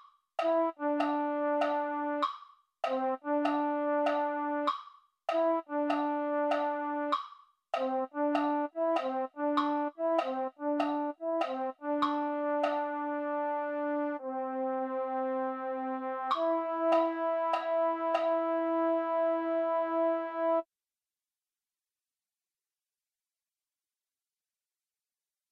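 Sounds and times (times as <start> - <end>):
MIDI baritone: 0.4 - 20.6.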